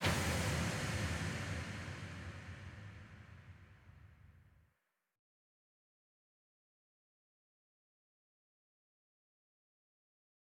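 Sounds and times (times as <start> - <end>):
impact effect: 0.0 - 4.4.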